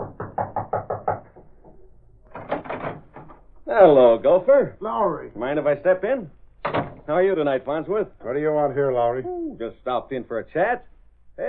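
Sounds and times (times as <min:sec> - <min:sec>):
knocking on a door: 0:00.0 - 0:03.3, 0:06.6 - 0:07.1
speech: 0:03.7 - 0:06.4, 0:07.1 - 0:11.4.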